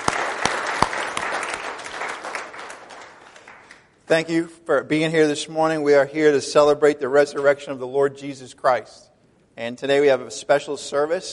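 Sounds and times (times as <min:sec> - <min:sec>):
church congregation applauding at a morning Easter resurrection service: 0:00.0 - 0:04.0
speech: 0:04.1 - 0:11.3.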